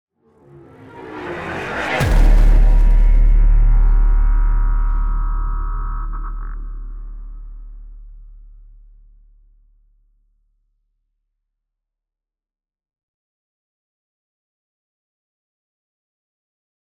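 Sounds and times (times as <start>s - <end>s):
hit: 1.4s - 8.2s.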